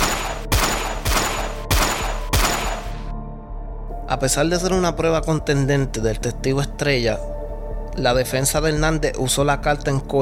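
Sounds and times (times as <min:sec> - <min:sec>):
gunshots: 0:00.0 - 0:03.1
speech: 0:04.1 - 0:07.4, 0:08.0 - 0:10.2.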